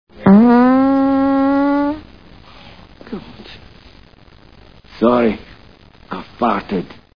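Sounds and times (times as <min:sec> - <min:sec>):
fart: 0:00.2 - 0:02.0.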